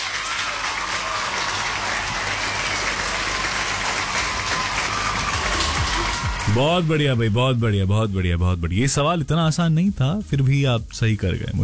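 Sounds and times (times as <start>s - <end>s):
applause: 0.0s - 7.1s
speech: 6.6s - 11.6s.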